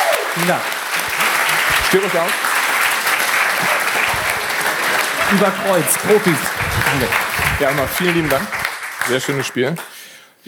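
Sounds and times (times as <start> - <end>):
audience applause at a live game event: 0.0 - 10.0
speech: 0.4 - 0.7, 1.9 - 2.5, 5.3 - 10.4
laughter: 2.9 - 9.5.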